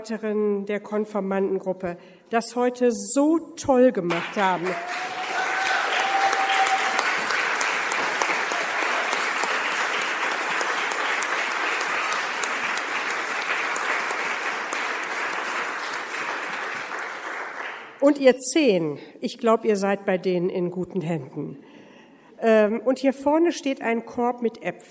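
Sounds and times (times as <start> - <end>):
speech: 0.0 - 5.4, 18.0 - 21.7, 22.4 - 24.8
audience applause: 4.2 - 18.0.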